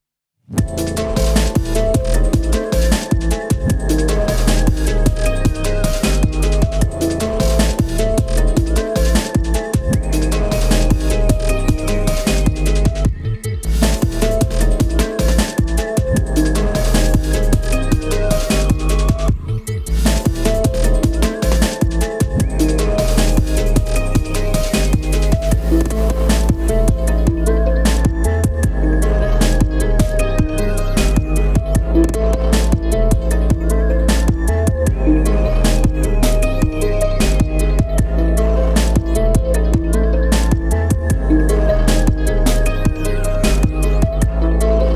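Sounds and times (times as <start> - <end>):
instrumental music: 0.6 - 44.9.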